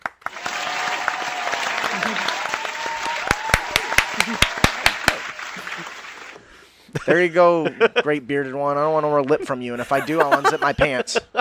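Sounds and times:
round of applause: 0.0s - 6.6s
laughter: 4.2s - 4.7s, 5.4s - 6.4s, 9.3s - 11.3s
speech: 7.1s - 11.3s.

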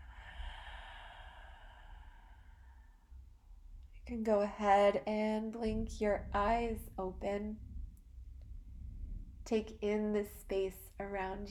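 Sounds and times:
slow deep breath in and out in a guided breathing session: 0.0s - 3.3s
speech: 4.0s - 7.7s, 9.5s - 11.4s.

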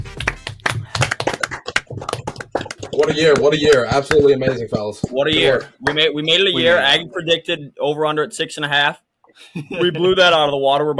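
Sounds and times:
hands clapping: 0.0s - 6.8s
speech: 3.0s - 10.9s.

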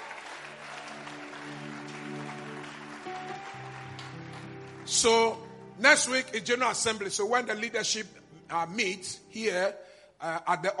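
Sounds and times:
audience clapping: 0.0s - 5.5s
speech: 4.9s - 10.7s.

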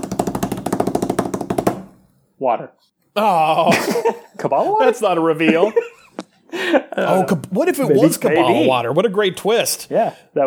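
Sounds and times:
drumroll sound effect: 0.0s - 2.1s
speech: 2.4s - 5.9s, 6.5s - 10.4s
laughter: 3.2s - 8.8s.

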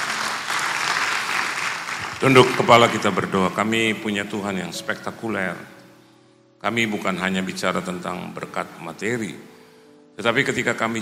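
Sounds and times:
lively audience applause: 0.0s - 3.3s
speech: 2.2s - 5.8s, 6.6s - 9.5s, 10.2s - 11.0s.

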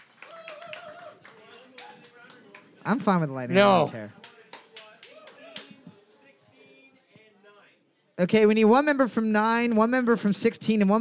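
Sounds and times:
scattered hand claps for winning trivia team: 0.0s - 3.2s, 4.1s - 6.0s
murmuring voices: 0.2s - 8.0s
speech: 2.8s - 4.2s, 8.2s - 10.9s.

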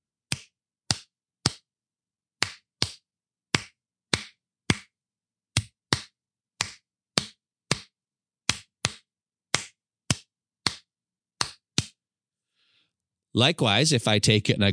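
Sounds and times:
hands clapping a slow rhythm: 0.3s - 1.7s, 2.4s - 5.0s, 5.6s - 12.0s
speech: 13.4s - 14.7s.

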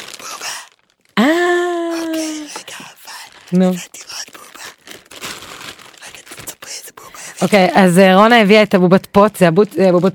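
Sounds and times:
packaging rustling and crinkling: 0.0s - 1.2s, 2.5s - 8.1s
speech: 3.5s - 4.1s, 7.4s - 10.1s.

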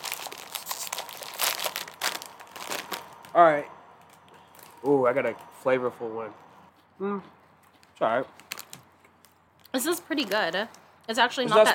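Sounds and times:
crinkling bag of crunchy cheese snacks: 0.0s - 3.3s, 8.4s - 10.8s
speech: 3.4s - 3.8s, 4.8s - 6.4s, 7.0s - 7.4s, 8.0s - 8.4s, 9.8s - 11.7s.

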